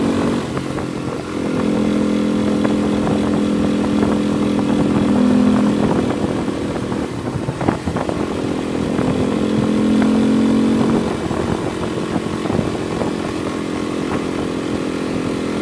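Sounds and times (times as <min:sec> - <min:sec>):
Kawasaki KLX 250S motorcycle engine running rough and dying: 0:00.0 - 0:15.6.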